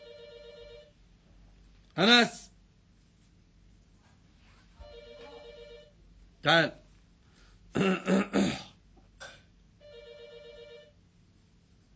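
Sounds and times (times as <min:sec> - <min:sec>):
telephone ringing: 0:00.0 - 0:01.0, 0:04.8 - 0:06.0, 0:09.8 - 0:11.0
speech: 0:02.0 - 0:02.4, 0:06.4 - 0:06.8, 0:07.7 - 0:08.5.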